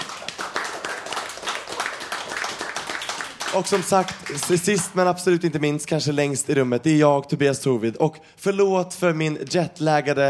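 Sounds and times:
audience applause: 0.0 - 5.0
speech: 3.5 - 10.2.

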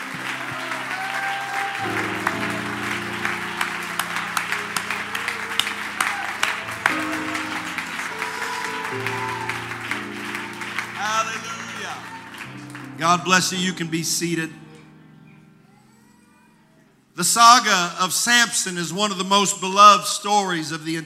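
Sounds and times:
crowd shouts: 0.0 - 12.7
audience clapping in praise: 0.0 - 14.0
sustained organ or keyboard chords: 0.0 - 15.8
speech: 13.0 - 14.7, 17.2 - 21.0.

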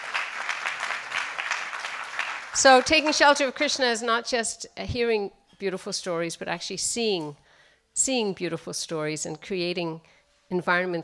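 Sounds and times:
crowd clapping: 0.0 - 3.6
speech: 2.6 - 7.4, 8.0 - 11.0.

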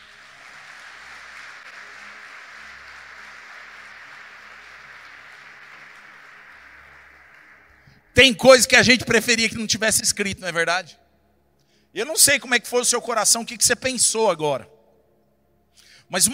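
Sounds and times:
audience applause: 0.0 - 8.1
speech: 8.2 - 11.0, 11.9 - 14.8, 16.1 - 16.3.

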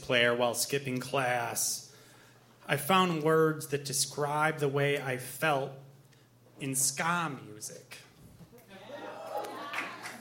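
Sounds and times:
speech: 0.1 - 1.9, 2.7 - 5.8, 6.6 - 8.0
audience cheering: 8.7 - 10.2.

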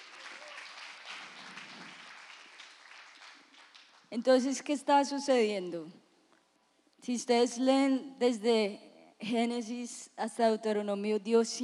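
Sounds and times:
audience applause for actors: 0.0 - 4.1
speech: 4.1 - 6.0, 7.1 - 11.6.

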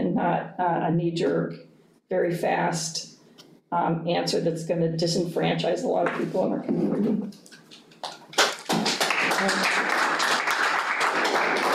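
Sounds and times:
speech: 0.2 - 8.5, 9.4 - 9.8
audience clapping at a meeting: 8.0 - 11.7.

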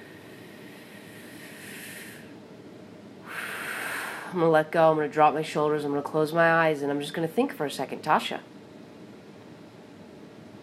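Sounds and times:
deep breath: 0.0 - 2.4, 3.2 - 4.4
speech: 4.3 - 8.5.

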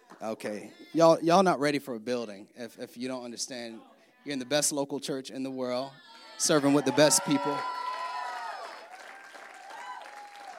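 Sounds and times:
speech: 0.2 - 7.8
church audience clapping: 6.8 - 10.5.

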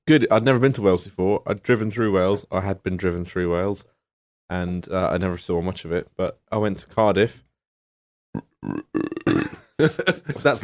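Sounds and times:
speech: 0.1 - 7.5, 8.3 - 9.2, 9.8 - 10.6
person imitating frog croaks: 8.3 - 9.7
laughter: 9.6 - 10.6.

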